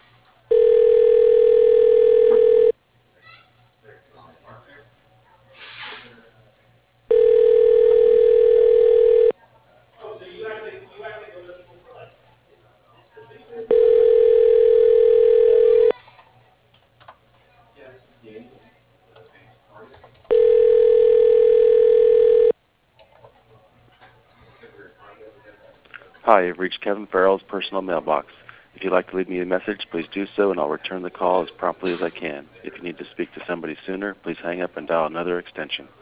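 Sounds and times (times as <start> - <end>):
faint noise: 0.0 - 35.9
telephone ring tones while a call is transferred: 0.5 - 2.7, 7.1 - 9.3, 13.7 - 15.9, 20.3 - 22.5
speech: 26.4 - 35.9.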